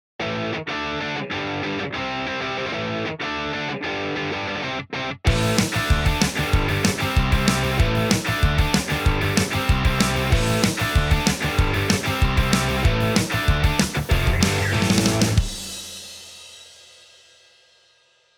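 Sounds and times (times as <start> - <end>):
guitar: 0.2 - 15.9.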